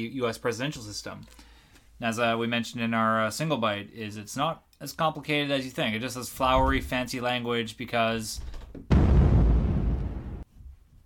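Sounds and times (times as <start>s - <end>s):
speech: 0.0s - 9.0s
cannon fire from ships: 8.9s - 10.4s.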